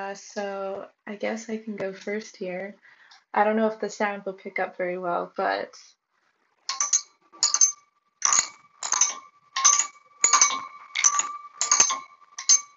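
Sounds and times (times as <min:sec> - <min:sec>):
speech: 0:00.0 - 0:06.0
tapping water-filled glass bottles like a xylophone: 0:06.7 - 0:12.7.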